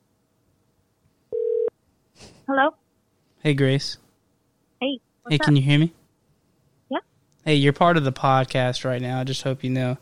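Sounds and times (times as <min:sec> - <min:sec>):
telephone ringing tone while calling: 0:01.3 - 0:01.7
speech: 0:02.5 - 0:02.8, 0:03.4 - 0:04.0, 0:04.8 - 0:06.0, 0:06.9 - 0:09.9.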